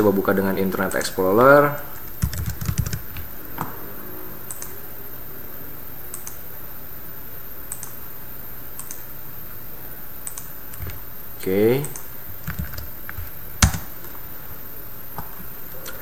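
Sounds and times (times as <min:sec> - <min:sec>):
speech: 0:00.0 - 0:02.3, 0:11.4 - 0:12.0
typing login credentials on a computer keyboard: 0:02.0 - 0:03.8, 0:04.4 - 0:04.8, 0:06.1 - 0:06.5, 0:07.7 - 0:08.0, 0:08.8 - 0:09.1, 0:10.2 - 0:11.0, 0:11.8 - 0:14.2.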